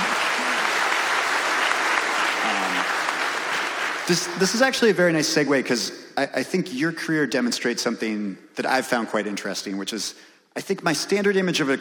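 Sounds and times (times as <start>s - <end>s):
audience clapping: 0.0s - 4.6s
speech: 4.1s - 11.7s.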